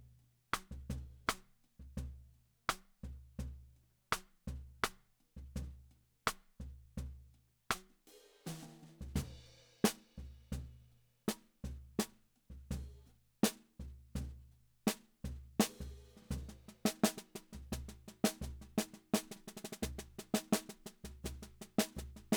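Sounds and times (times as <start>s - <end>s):
snare drum recorded from the bottom: 0.5s - 1.5s, 2.7s - 2.9s, 4.1s - 5.0s, 7.7s - 10.7s, 11.3s - 14.3s, 14.9s - 22.3s.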